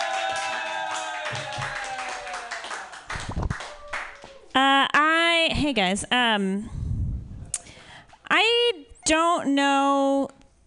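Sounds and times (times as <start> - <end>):
audience clapping at a comedy open mic night: 0.0 - 4.6
speech: 4.6 - 4.9, 5.7 - 6.8, 8.4 - 10.3.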